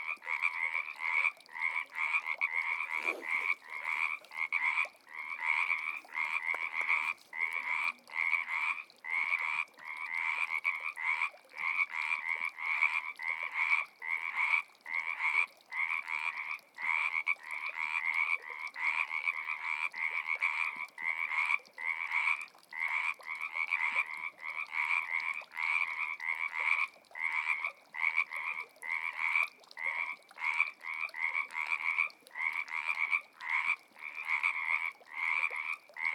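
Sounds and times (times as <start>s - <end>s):
frogs: 0.0s - 36.1s.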